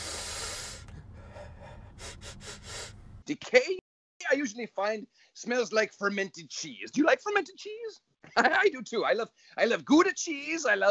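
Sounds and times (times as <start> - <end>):
long breathy inhale: 0.0 - 3.2
quick sharp sniffs: 0.0 - 3.2
speech: 3.3 - 10.9.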